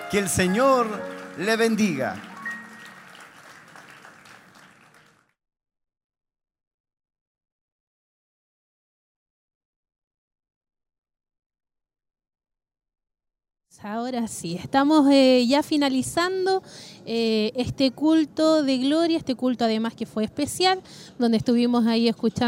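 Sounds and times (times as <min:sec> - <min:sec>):
audience applause: 0:00.0 - 0:05.3
speech: 0:00.1 - 0:02.3, 0:13.8 - 0:22.4.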